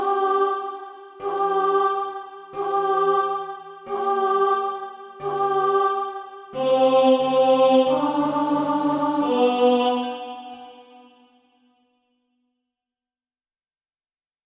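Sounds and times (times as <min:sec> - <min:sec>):
alto voice singing SATB practice music: 0:00.0 - 0:11.3.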